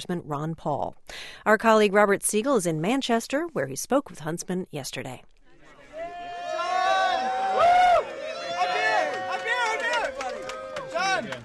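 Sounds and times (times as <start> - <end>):
speech: 0.0 - 5.3
crowd chatter outside a coffee house: 5.4 - 11.4.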